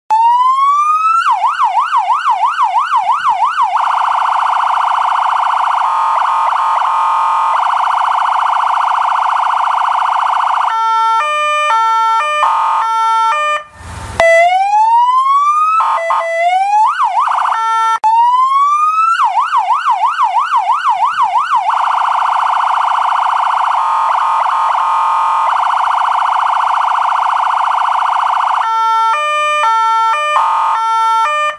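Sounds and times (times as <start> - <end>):
police siren signals: 0.1 - 31.5.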